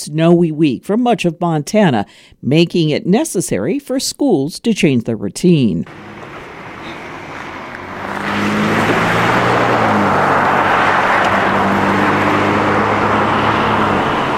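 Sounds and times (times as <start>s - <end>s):
speech: 0.0s - 6.2s
traffic at Colton Boulevard and 19th Street West, Billings, on a snowy day: 5.8s - 14.3s.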